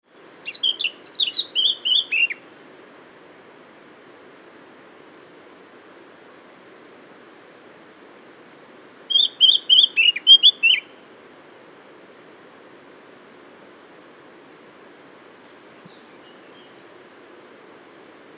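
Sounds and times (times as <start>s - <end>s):
soft background hiss: 0.0s - 18.3s
Eurasian blackcap warbling song: 0.4s - 2.5s, 9.1s - 10.9s.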